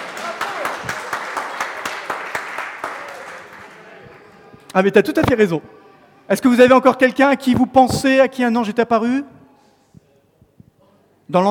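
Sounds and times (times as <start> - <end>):
audience applause: 0.0 - 4.7
speech: 4.8 - 9.3, 11.3 - 11.4.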